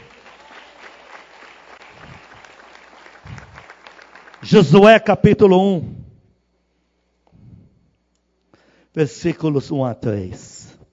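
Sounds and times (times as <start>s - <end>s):
audience applause: 0.0s - 4.7s
speech: 4.4s - 6.0s, 9.0s - 10.7s.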